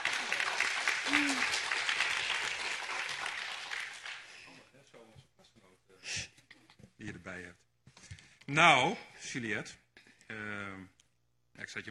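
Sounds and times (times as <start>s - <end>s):
audience applause: 0.0s - 4.4s
speech: 8.5s - 9.8s, 11.7s - 11.9s.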